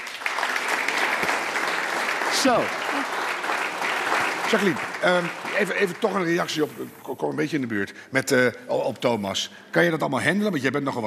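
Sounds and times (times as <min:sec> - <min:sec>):
audience applause: 0:00.0 - 0:06.8
speech: 0:02.4 - 0:03.2, 0:04.5 - 0:11.0.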